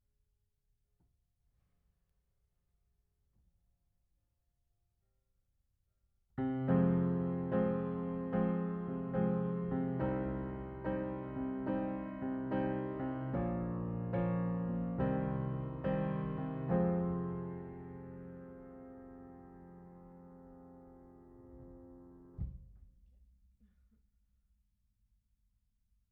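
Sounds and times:
piano: 6.4s - 22.8s.

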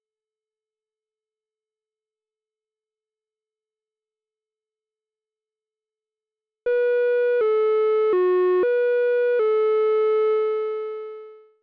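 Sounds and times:
Moog synthesizer: 6.7s - 11.6s.

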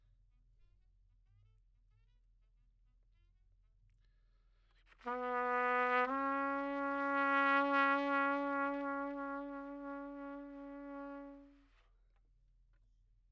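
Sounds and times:
trumpet: 4.9s - 11.8s.

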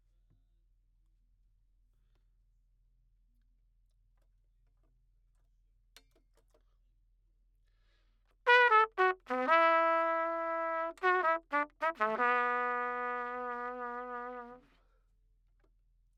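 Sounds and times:
trumpet: 8.5s - 14.7s.

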